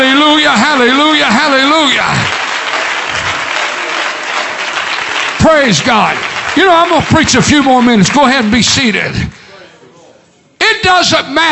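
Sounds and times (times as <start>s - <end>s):
church congregation clapping hands in praise: 0.4s - 9.3s
speech: 0.8s - 2.4s, 5.5s - 9.4s, 10.7s - 11.5s.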